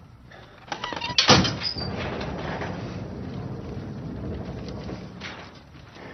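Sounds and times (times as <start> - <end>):
heavy main door sliding open with clicks, creaks and grinding: 0.7 - 6.0.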